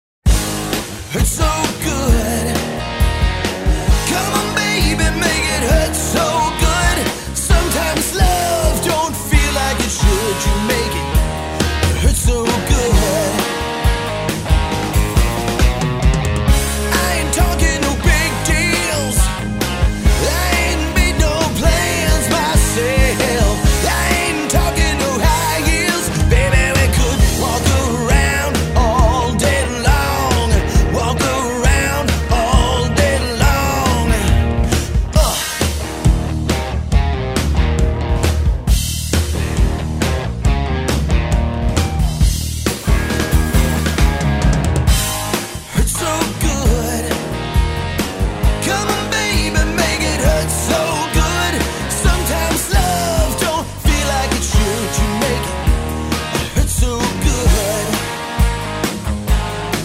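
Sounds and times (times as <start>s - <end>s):
cover band playing: 0.3s - 59.8s.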